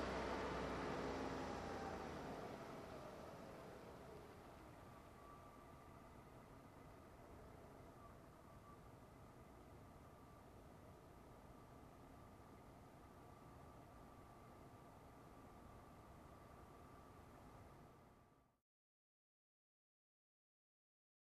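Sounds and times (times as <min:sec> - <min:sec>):
SUV engine starting and driving away: 0:00.0 - 0:05.5.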